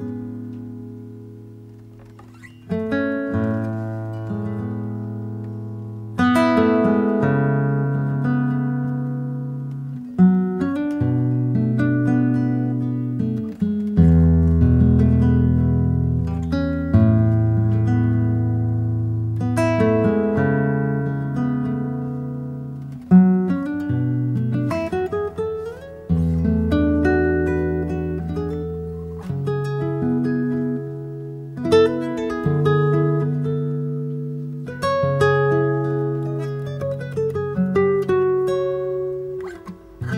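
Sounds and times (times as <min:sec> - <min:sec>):
Lowden S 32J acoustic guitar: 0:00.0 - 0:40.1.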